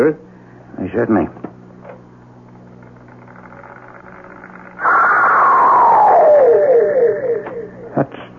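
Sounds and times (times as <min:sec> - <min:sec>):
speech: 0:00.0 - 0:00.2, 0:00.8 - 0:01.5
faint hiss: 0:01.4 - 0:08.3
eerie shriek played back from tape: 0:02.6 - 0:08.2.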